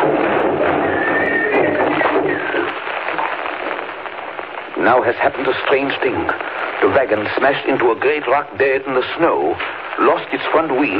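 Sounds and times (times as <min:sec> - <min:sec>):
horses galloping: 0:00.0 - 0:03.4
horses whinnying: 0:00.8 - 0:02.6
speech: 0:04.9 - 0:10.9.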